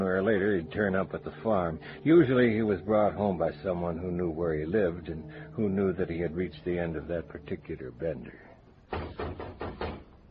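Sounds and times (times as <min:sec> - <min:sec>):
faint low hum: 0:00.0 - 0:10.2
speech: 0:00.3 - 0:08.5
knocking on a door: 0:08.9 - 0:10.2.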